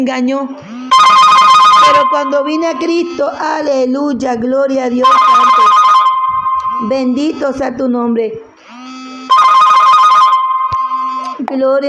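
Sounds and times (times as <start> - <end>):
speech: 0.0 - 5.8, 6.8 - 8.5, 11.4 - 11.8
mobile phone ringing with a bright repeating electronic ringtone: 0.9 - 3.4, 5.0 - 7.6, 8.6 - 11.4.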